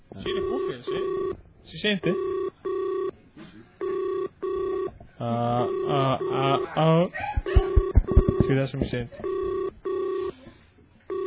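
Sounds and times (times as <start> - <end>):
telephone ringing as a call goes out to a guest: 0.2 - 1.4, 2.0 - 3.1, 3.8 - 5.0, 5.6 - 6.7, 7.5 - 10.4, 11.1 - 11.2
speech: 1.7 - 2.4, 8.6 - 9.4
warbling, shifting electronic telephone tones: 7.4 - 8.6.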